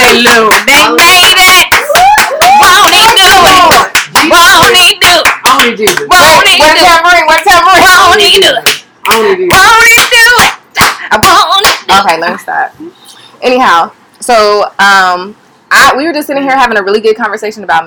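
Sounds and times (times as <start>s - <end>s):
hand clapping: 0.0s - 12.1s
speech: 13.6s - 17.8s.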